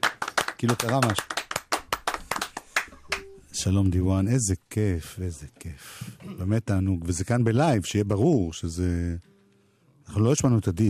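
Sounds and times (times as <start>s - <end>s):
crowd hand clapping: 0.0s - 3.3s
speech: 0.6s - 1.4s, 3.6s - 9.3s, 10.1s - 10.8s.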